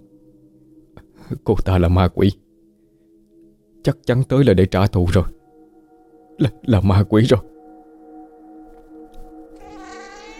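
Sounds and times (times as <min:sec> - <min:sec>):
speech: 0:01.3 - 0:02.4, 0:03.8 - 0:05.4, 0:06.4 - 0:07.5
cat meowing mournfully: 0:09.6 - 0:10.3.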